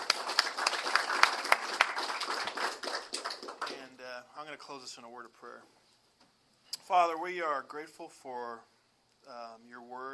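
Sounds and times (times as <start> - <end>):
audience applause: 0.0 - 3.8
speech: 4.5 - 5.8, 6.9 - 10.1.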